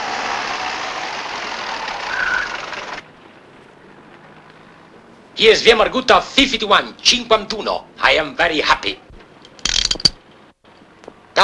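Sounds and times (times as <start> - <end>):
taxi engine idling as it pulls up to a two-story stone building: 0.0 - 5.0
speech: 5.4 - 9.0.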